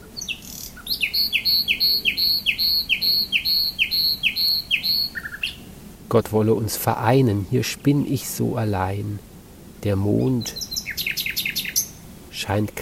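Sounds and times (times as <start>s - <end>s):
nightingale singing: 0.0s - 5.7s, 10.1s - 12.1s
speech: 1.2s - 10.6s, 12.4s - 12.8s.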